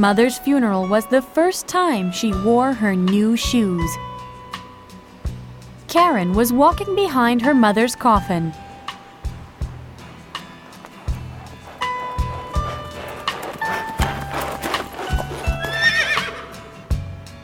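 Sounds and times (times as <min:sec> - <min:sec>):
speech: 0:00.0 - 0:04.1, 0:05.9 - 0:08.6
hooves clopping of a horse-drawn carriage passing: 0:00.0 - 0:17.4
horse whinnying: 0:10.6 - 0:16.8.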